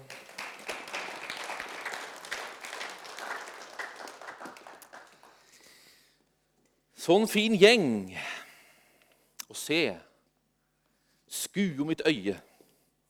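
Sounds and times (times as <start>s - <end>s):
audience clapping: 0.0s - 5.9s
speech: 7.1s - 8.3s, 9.6s - 10.1s, 11.6s - 12.5s.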